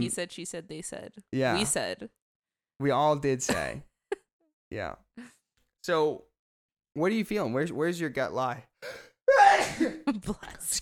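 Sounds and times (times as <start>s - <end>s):
speech: 0.0s - 2.2s, 2.8s - 3.9s, 4.7s - 6.3s, 7.0s - 10.7s
sneeze: 9.3s - 10.0s.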